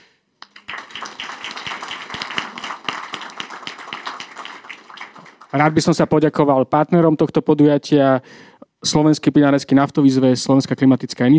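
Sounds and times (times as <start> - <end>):
audience applause: 0.4 - 6.0
speech: 5.5 - 11.3.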